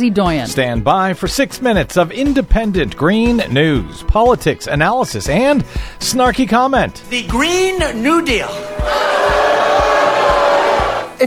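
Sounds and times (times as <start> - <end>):
speech: 0.0 - 9.4
laughter: 0.0 - 11.2
rally crowd booing: 7.0 - 11.2.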